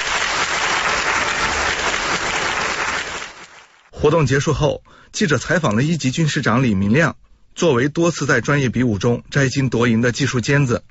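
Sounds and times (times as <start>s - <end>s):
sustained applause from soldiers: 0.0s - 4.0s
speech: 4.0s - 10.8s.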